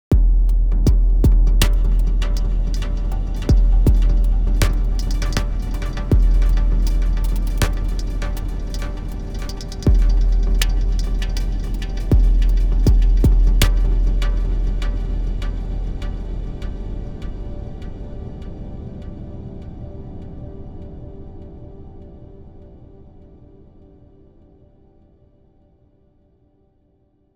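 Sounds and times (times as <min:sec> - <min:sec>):
drums: 0:00.1 - 0:16.6.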